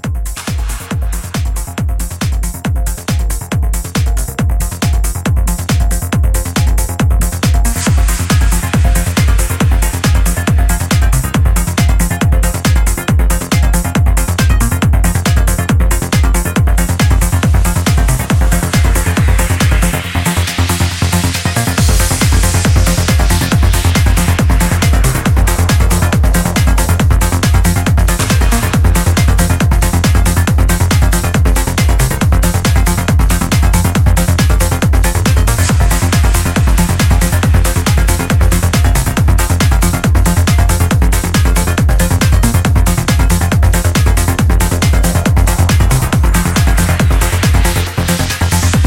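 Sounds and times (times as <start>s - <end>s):
soundscape mix: 0.2s - 48.8s.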